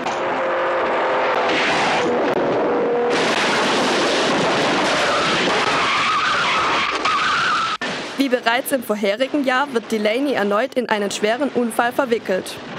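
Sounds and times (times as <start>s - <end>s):
Porsche and Ferrari race car engines howling through a chicane: 0.0s - 7.8s
race car tires screeching and skidding: 0.0s - 7.8s
speech: 8.3s - 12.7s.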